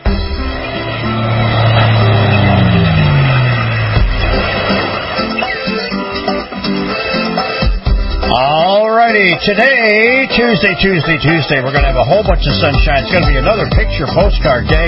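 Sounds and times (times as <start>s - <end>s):
motorboat engine roaring: 0.0s - 14.8s
rushing water: 0.6s - 9.3s
speech: 9.4s - 14.8s.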